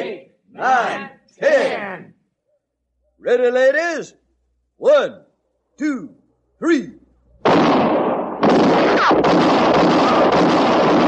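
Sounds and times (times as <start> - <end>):
speech: 0.6 - 2.1, 3.2 - 4.2, 4.8 - 7.0
gunshots in a 1958 western radio drama: 7.4 - 11.0.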